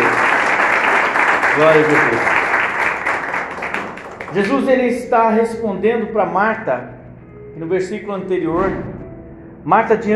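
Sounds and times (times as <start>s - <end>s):
audience applause: 0.0s - 5.0s
speech: 1.6s - 2.4s, 4.3s - 7.0s, 7.6s - 8.9s, 9.6s - 10.1s.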